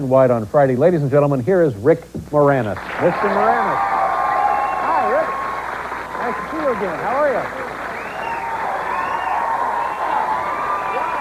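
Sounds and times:
speech: 0:00.0 - 0:04.0, 0:06.7 - 0:07.7
studio audience cheering and applauding: 0:02.8 - 0:11.1.

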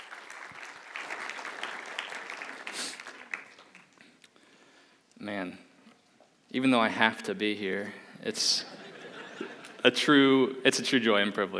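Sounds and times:
audience applause: 0:00.0 - 0:04.0
speech: 0:05.2 - 0:05.6, 0:06.5 - 0:08.8, 0:09.8 - 0:11.5
laughter: 0:08.6 - 0:10.0.

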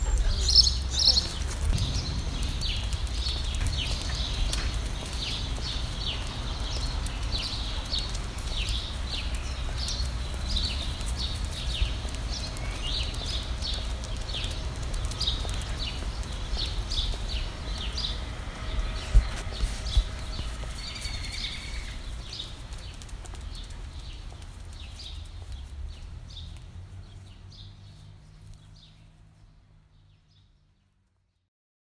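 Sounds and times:
low rumbling: 0:00.0 - 0:28.8
bird chirping: 0:00.0 - 0:30.6.

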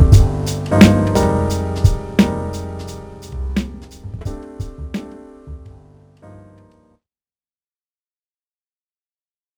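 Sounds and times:
boom bap beat made on SP1200 sampler: 0:00.0 - 0:05.2.

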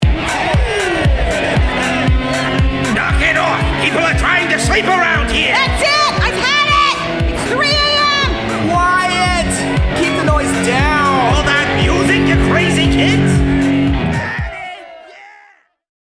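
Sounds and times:
house party music mix: 0:00.0 - 0:15.0
laughter: 0:00.1 - 0:15.5.

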